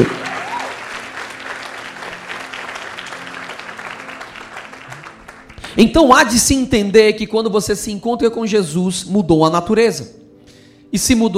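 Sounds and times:
speech: 0:00.0 - 0:00.3, 0:05.8 - 0:10.2, 0:10.9 - 0:11.3
audience applause: 0:00.0 - 0:05.8.

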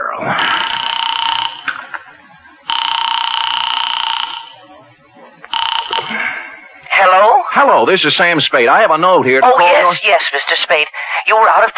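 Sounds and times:
speech: 0:00.2 - 0:00.6, 0:07.8 - 0:11.7
telephone ringing: 0:00.3 - 0:07.4.

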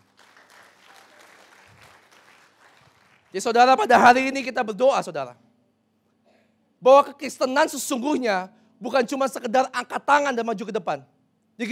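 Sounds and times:
audience applause: 0:00.0 - 0:03.4
speech: 0:03.3 - 0:05.4, 0:06.8 - 0:11.7.

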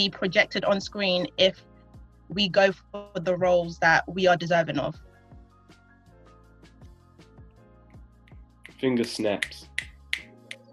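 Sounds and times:
speech: 0:00.0 - 0:01.7, 0:02.3 - 0:05.1, 0:08.8 - 0:09.8
finger snapping: 0:08.3 - 0:10.7.

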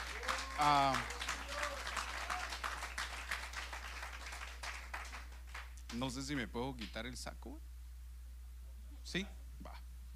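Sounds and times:
audience applause: 0:00.0 - 0:05.7
speech: 0:00.6 - 0:01.1, 0:05.9 - 0:07.7, 0:09.1 - 0:09.8.

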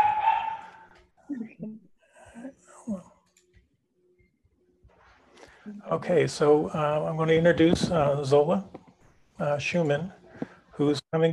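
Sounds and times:
dog barking: 0:00.0 - 0:00.9
speech: 0:05.9 - 0:08.8, 0:09.4 - 0:10.2, 0:10.8 - 0:11.3.

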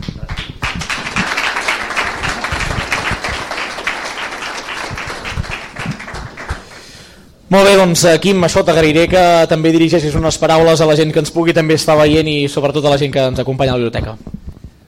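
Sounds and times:
crowd applauding: 0:00.1 - 0:07.2
speech: 0:07.5 - 0:14.4.

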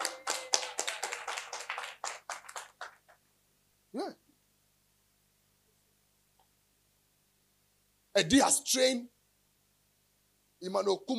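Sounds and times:
audience clapping hands: 0:00.0 - 0:03.2
speech: 0:03.9 - 0:04.2, 0:08.2 - 0:09.2, 0:10.6 - 0:11.1.

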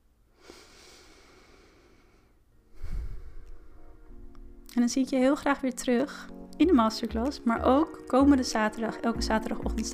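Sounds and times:
slow deliberate deep breath: 0:00.3 - 0:03.8
speech: 0:04.8 - 0:09.9.

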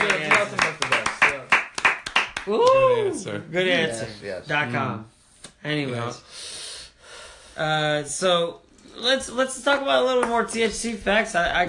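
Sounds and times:
hand claps: 0:00.0 - 0:02.9, 0:10.1 - 0:10.8
speech: 0:02.4 - 0:06.6, 0:07.6 - 0:11.6.

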